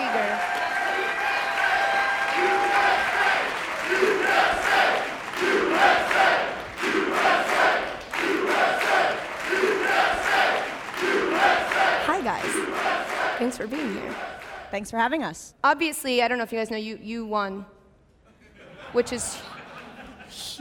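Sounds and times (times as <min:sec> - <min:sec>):
cheers and whoops: 0:00.0 - 0:04.2
crowd clapping: 0:00.0 - 0:14.7
speech: 0:13.4 - 0:17.8, 0:18.9 - 0:19.5, 0:20.3 - 0:20.5
laughter: 0:18.2 - 0:20.5.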